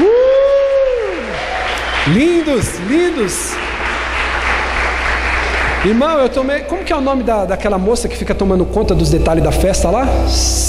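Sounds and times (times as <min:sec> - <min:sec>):
church audience applauding: 0:00.0 - 0:07.1
speech: 0:02.1 - 0:03.8, 0:05.8 - 0:10.6.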